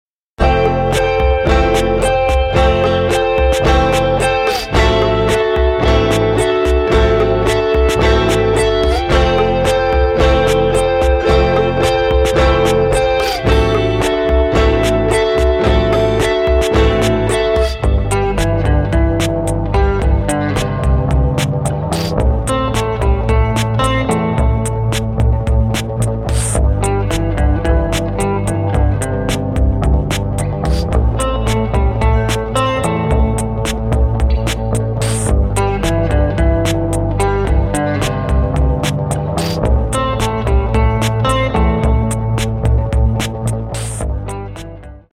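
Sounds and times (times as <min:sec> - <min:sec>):
instrumental music: 0:00.4 - 0:45.1.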